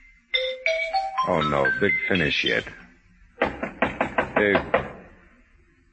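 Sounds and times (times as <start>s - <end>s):
xylophone playing: 0.3s - 2.5s
speech: 1.3s - 2.9s, 4.4s - 4.8s.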